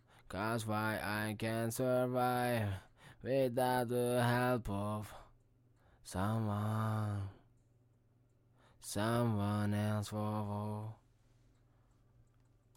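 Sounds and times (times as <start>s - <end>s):
hip hop a cappella vocal in A minor at 82 BPM: 0.3s - 5.3s, 6.0s - 7.5s, 8.8s - 11.0s.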